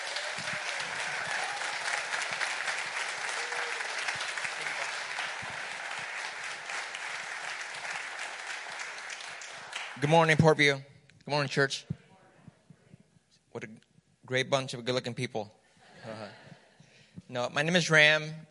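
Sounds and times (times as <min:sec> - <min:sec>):
audience clapping in welcome: 0:00.0 - 0:10.6
speech: 0:10.0 - 0:11.9, 0:14.3 - 0:15.6, 0:17.3 - 0:18.5.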